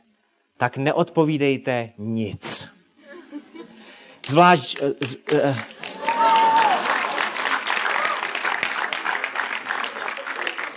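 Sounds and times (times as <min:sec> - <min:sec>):
speech: 0:00.6 - 0:02.7, 0:04.2 - 0:06.4
man clapping: 0:04.6 - 0:10.7.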